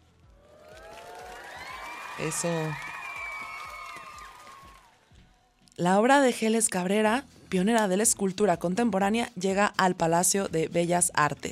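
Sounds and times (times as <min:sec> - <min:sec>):
crowd applauding and cheering: 0:00.2 - 0:05.2
long shrill whistles: 0:01.5 - 0:04.8
speech: 0:02.2 - 0:02.9, 0:05.8 - 0:11.5.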